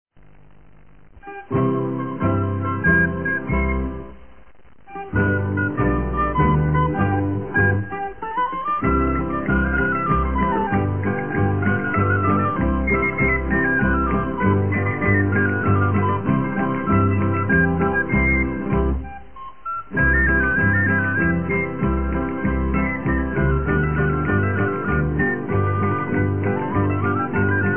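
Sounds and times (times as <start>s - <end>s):
Majorcan bolero music: 1.2s - 4.2s, 4.8s - 27.7s.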